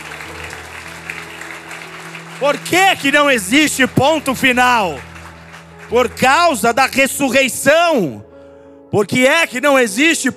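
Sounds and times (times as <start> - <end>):
audience applause: 0.0 - 7.2
speech: 2.4 - 5.1, 5.9 - 8.2, 8.9 - 10.3.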